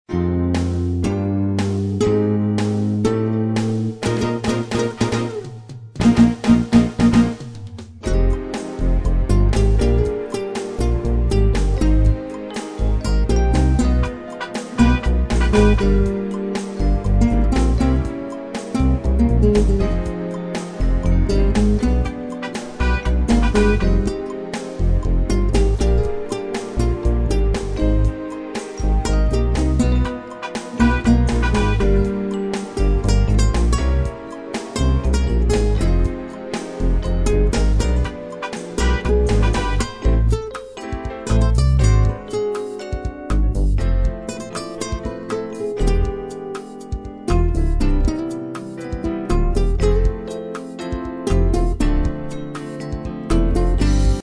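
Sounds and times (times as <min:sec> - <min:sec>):
nylon-string guitar: 0:00.0 - 0:54.2.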